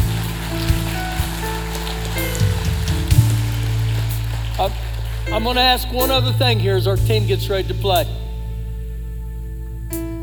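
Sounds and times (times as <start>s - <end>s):
audience applause: 0.0s - 6.3s
low sustained hum: 0.0s - 10.2s
speech: 5.4s - 8.2s.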